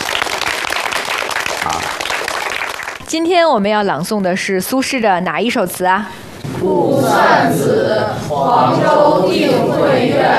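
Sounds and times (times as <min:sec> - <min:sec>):
sustained audience applause: 0:00.0 - 0:03.0
speech: 0:03.1 - 0:10.3.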